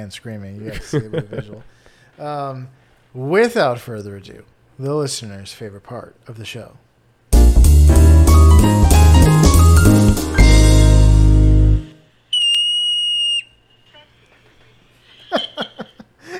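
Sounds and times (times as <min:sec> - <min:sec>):
speech: 0:00.0 - 0:06.8
laughter: 0:00.7 - 0:01.7, 0:15.1 - 0:16.3
short musical jingle: 0:07.9 - 0:12.0
yellow-bellied marmot call: 0:12.3 - 0:14.0.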